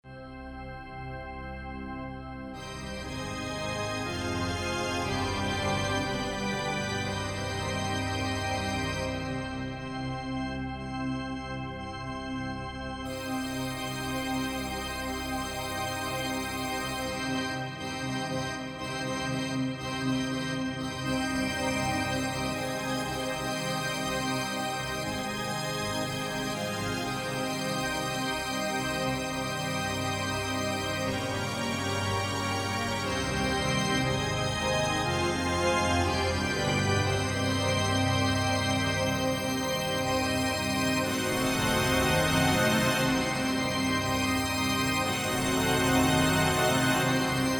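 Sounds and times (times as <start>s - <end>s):
church organ: 0.1s - 47.5s.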